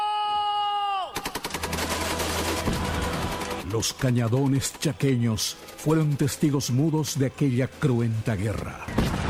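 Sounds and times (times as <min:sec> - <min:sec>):
person shouting an order to fire: 0:00.0 - 0:01.2
rapid burst of gunfire: 0:01.2 - 0:03.7
speech: 0:03.7 - 0:09.1.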